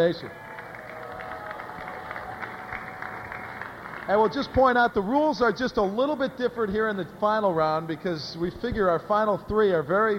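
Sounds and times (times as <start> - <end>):
speech: 0.0 - 0.4, 4.1 - 10.1
crowd applause at mall: 0.3 - 5.0.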